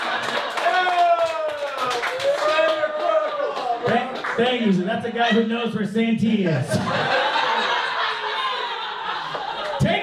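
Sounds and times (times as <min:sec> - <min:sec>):
audience applause: 0:00.0 - 0:04.4
speech: 0:03.9 - 0:07.3
laughter: 0:06.7 - 0:10.0.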